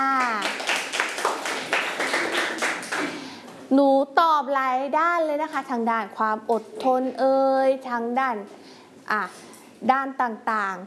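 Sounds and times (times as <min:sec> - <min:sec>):
children clapping for a classmate: 0:00.0 - 0:03.2
speech: 0:03.7 - 0:10.8.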